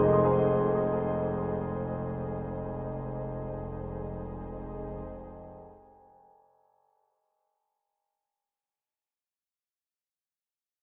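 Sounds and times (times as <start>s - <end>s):
warm-natured piano: 0.0s - 5.8s.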